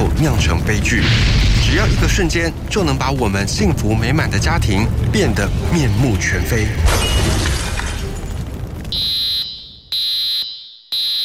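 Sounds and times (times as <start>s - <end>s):
speech: 0.2s - 7.5s
residential fire alarm sounding: 8.9s - 11.2s.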